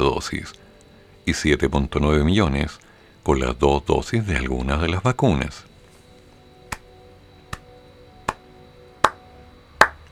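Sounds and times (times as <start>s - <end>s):
speech: 0.0s - 0.6s, 1.3s - 5.7s
slow hand claps: 6.7s - 6.9s, 7.5s - 9.2s, 9.8s - 10.1s.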